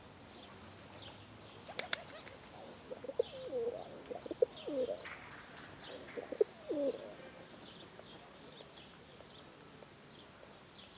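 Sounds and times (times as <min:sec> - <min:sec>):
small birds chirping: 0:00.3 - 0:10.9
pigeons cooing: 0:01.8 - 0:05.0, 0:05.9 - 0:07.2.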